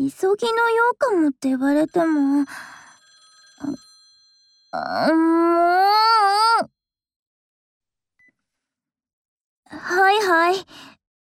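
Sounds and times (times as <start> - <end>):
speech: 0.0 - 2.8, 3.6 - 3.8, 4.7 - 6.7, 9.7 - 11.0
telephone ringing: 1.8 - 4.9.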